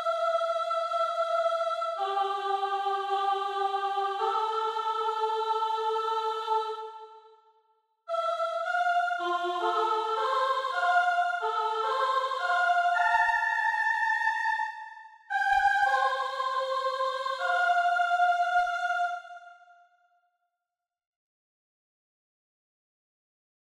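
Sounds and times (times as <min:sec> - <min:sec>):
soprano singing: 0:00.0 - 0:07.3, 0:08.1 - 0:14.7, 0:15.3 - 0:19.6.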